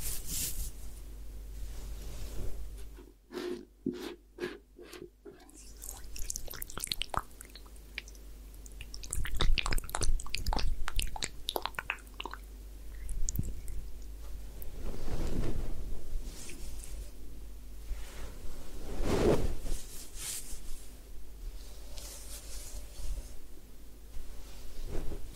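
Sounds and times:
low steady hum: 0.0 - 25.3
wet rubbing, squishing and scratching of hair washing and scalp massage: 4.8 - 13.8.

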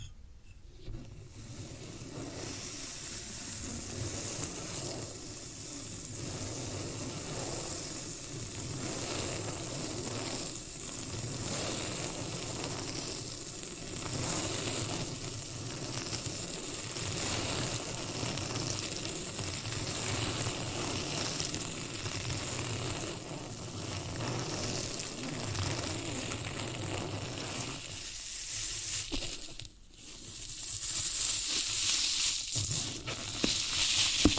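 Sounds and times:
floral foam crackling: 1.3 - 34.3.

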